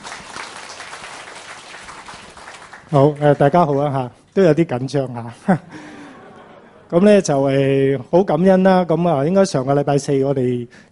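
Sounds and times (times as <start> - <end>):
applause from a Christian gathering in Hong Kong: 0.0 - 3.8
speech: 2.9 - 5.9, 6.9 - 10.9
laughter: 5.5 - 6.9.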